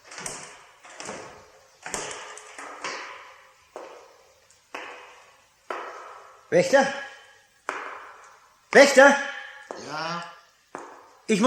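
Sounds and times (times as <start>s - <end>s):
heavy footsteps echoing down a corridor: 0.0s - 11.3s
speech: 6.5s - 7.0s, 8.8s - 9.3s, 11.3s - 11.4s.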